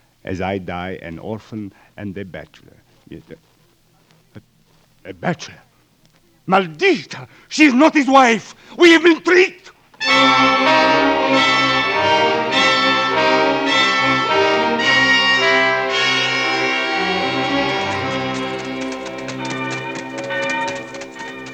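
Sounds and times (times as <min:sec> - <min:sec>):
speech: 0:00.2 - 0:03.5, 0:04.4 - 0:05.7, 0:06.4 - 0:12.4
prison alarm bell ringing: 0:10.0 - 0:21.5.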